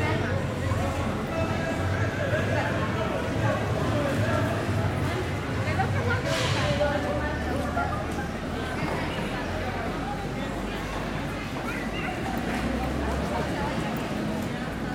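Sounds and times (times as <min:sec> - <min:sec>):
crowd at a market in Costa Rica: 0:00.0 - 0:14.9
children calling out at a market: 0:11.4 - 0:12.8.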